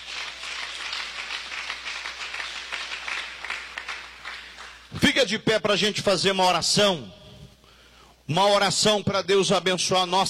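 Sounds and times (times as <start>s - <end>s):
audience clapping: 0.0s - 4.9s
speech: 5.2s - 7.2s, 8.3s - 10.2s.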